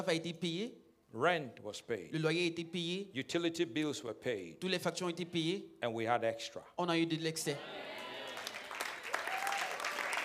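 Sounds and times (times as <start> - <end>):
speech: 0.0 - 8.0
audience applause: 7.8 - 10.2.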